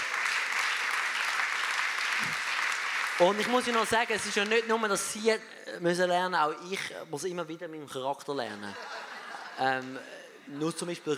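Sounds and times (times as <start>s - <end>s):
audience applause: 0.0s - 4.8s
speech: 3.2s - 9.0s, 9.6s - 11.1s
laughter: 8.6s - 11.1s.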